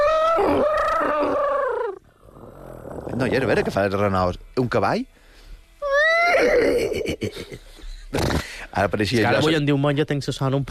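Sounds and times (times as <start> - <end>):
person imitating an elephant trumpeting: 0.0 - 3.2, 5.8 - 7.2
speech: 0.4 - 1.5, 3.2 - 5.2, 6.4 - 10.7.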